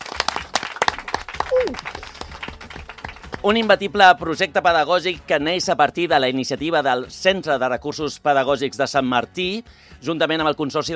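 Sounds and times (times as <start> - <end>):
applause: 0.0 - 4.2
speech: 1.6 - 2.0, 3.4 - 10.9.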